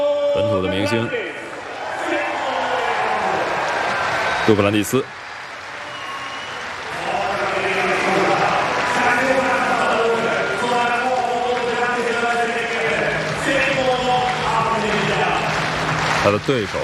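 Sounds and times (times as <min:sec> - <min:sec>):
speech: 0:00.4 - 0:01.2, 0:04.5 - 0:05.2, 0:16.2 - 0:16.8
large crowd clapping rhythmically: 0:00.4 - 0:16.8.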